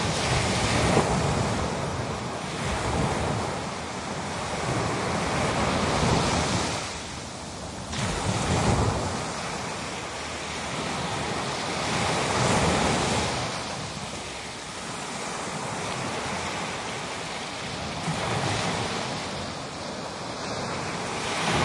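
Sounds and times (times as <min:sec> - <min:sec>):
Atlantic Ocean surf waves crashing on a beach: 0:00.0 - 0:21.6.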